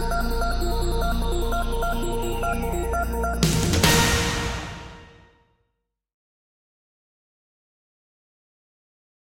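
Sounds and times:
promotional video background music: 0:00.0 - 0:05.4.

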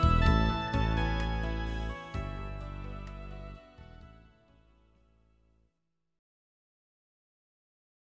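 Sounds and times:
instrumental background music: 0:00.0 - 0:05.4.

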